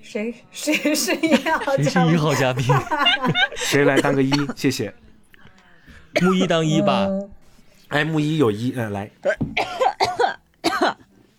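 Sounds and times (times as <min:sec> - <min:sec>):
speech: 0:00.1 - 0:05.1, 0:06.1 - 0:09.8
laughter: 0:00.6 - 0:05.0
person coughing after choking: 0:06.2 - 0:06.5, 0:09.3 - 0:11.0.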